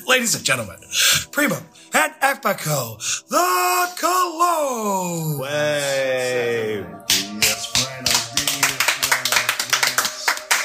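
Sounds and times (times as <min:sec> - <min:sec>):
speech: 0:00.1 - 0:07.0
sustained tone: 0:00.5 - 0:10.6
audience applause: 0:07.7 - 0:10.6.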